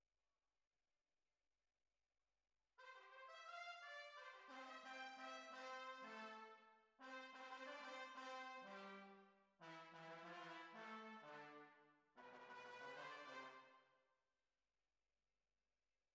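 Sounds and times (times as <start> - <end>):
tuba: 2.9 - 13.8.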